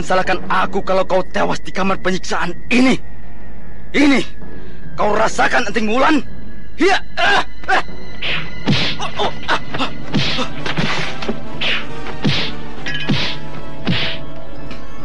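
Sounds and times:
speech: 0.0 - 3.2, 3.9 - 10.6
punches striking a body in a torture chamber: 10.1 - 10.5, 12.2 - 14.2.

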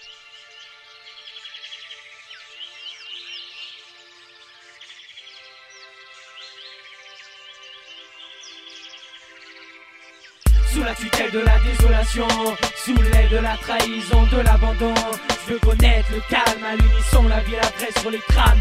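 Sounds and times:
birds chirping and trilling: 0.0 - 18.6
speech: 10.8 - 18.6.

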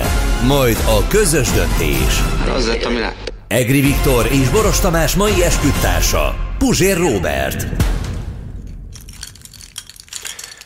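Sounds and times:
speech: 0.4 - 8.0
bunch of keys on a keyring shaken by an angry person: 8.7 - 10.6.

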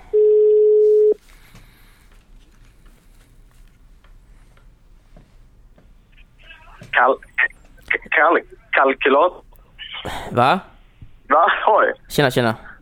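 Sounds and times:
phone line hiss: 0.1 - 1.2
telephone dial tone: 0.1 - 1.2
voice through a phone: 6.4 - 10.1
speech: 7.0 - 7.3, 8.2 - 10.7, 11.3 - 12.7.

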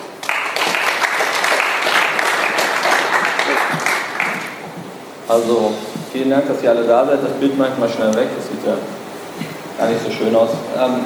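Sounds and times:
crowd applause: 0.0 - 4.7
speech: 5.3 - 11.0.

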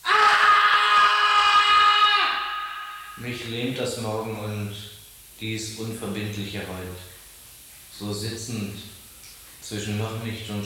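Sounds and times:
man screaming in the night: 0.0 - 3.4
speech: 3.2 - 7.1, 8.0 - 9.0, 9.7 - 10.6.

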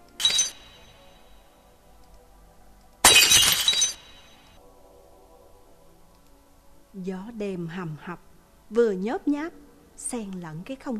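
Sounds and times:
windshield glass fragments tinkling: 0.1 - 1.0, 3.0 - 4.5
car windshield shattering, pounded with a high-heeled shoe: 3.0 - 4.4
speech: 7.0 - 10.9.

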